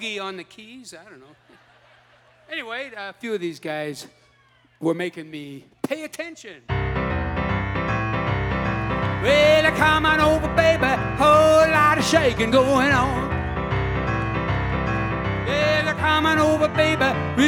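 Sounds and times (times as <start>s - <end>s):
laughter: 1.1s - 2.7s
piano piece: 6.7s - 17.4s.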